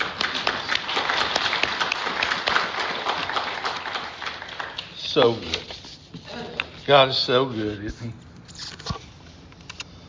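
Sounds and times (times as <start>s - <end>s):
audience clapping: 0.0s - 5.7s
speech: 5.2s - 5.7s, 6.9s - 8.7s.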